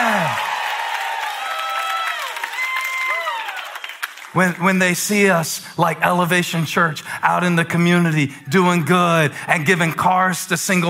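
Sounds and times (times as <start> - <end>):
crowd cheering and whooping: 0.0 - 4.6
speech: 4.4 - 10.8.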